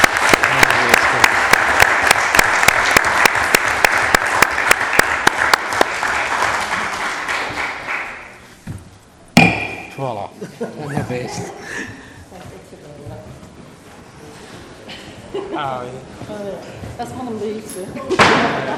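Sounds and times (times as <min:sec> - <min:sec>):
audience applause: 0:00.0 - 0:08.5
laughter: 0:10.3 - 0:12.2, 0:14.9 - 0:15.8, 0:18.0 - 0:18.7
speech: 0:11.2 - 0:11.9, 0:17.0 - 0:18.7.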